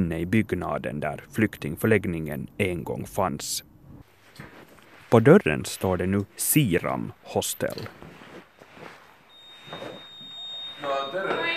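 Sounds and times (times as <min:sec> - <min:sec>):
speech: 0:00.0 - 0:03.7, 0:05.1 - 0:08.1, 0:10.8 - 0:11.4
high-pitched electronic signal tone inside a building: 0:09.3 - 0:11.5.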